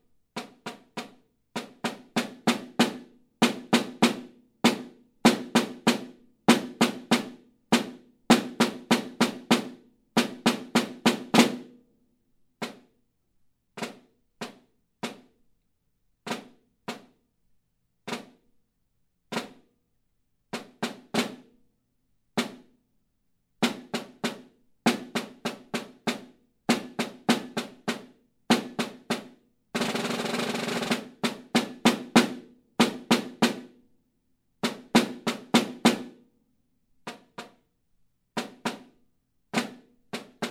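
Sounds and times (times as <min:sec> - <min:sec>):
snare drum: 0:00.0 - 0:11.8, 0:12.6 - 0:12.9, 0:13.8 - 0:15.3, 0:16.3 - 0:17.2, 0:18.1 - 0:18.4, 0:19.3 - 0:19.6, 0:20.5 - 0:21.5, 0:22.4 - 0:22.7, 0:23.6 - 0:33.9, 0:34.6 - 0:36.2, 0:37.0 - 0:37.6, 0:38.4 - 0:40.4.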